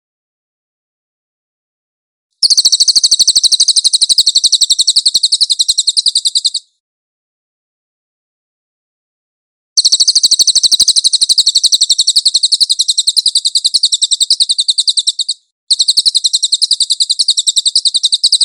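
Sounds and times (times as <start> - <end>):
Cililin bird giving a high chattering trill: 2.4 - 6.7, 9.8 - 18.4.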